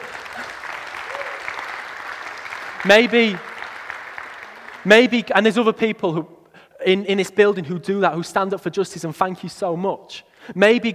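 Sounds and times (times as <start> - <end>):
audience applause: 0.0 - 5.1
speech: 2.8 - 3.5, 4.8 - 10.9.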